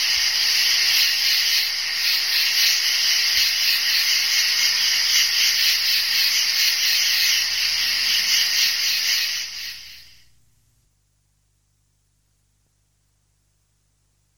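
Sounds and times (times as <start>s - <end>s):
several crickets chirping: 0.0s - 10.4s.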